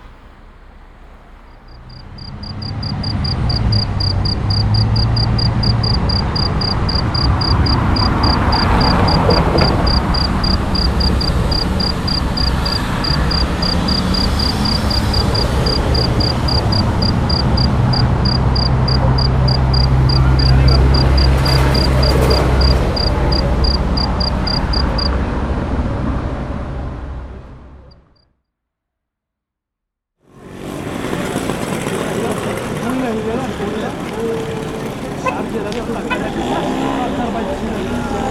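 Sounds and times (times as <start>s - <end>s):
Autolite car horns: 0.0s - 25.3s, 33.8s - 38.2s
rain: 0.0s - 27.0s, 30.4s - 36.1s.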